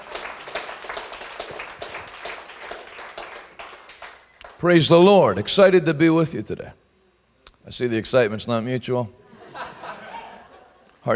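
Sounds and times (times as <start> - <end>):
audience clapping hands: 0.0 - 4.8
speech: 4.6 - 6.8, 7.7 - 9.2
laughter: 9.2 - 11.0.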